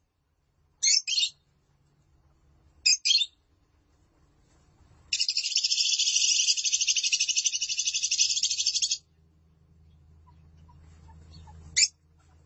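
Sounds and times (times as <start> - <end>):
lovebird song: 0.8 - 1.4, 2.8 - 3.4, 5.1 - 9.0.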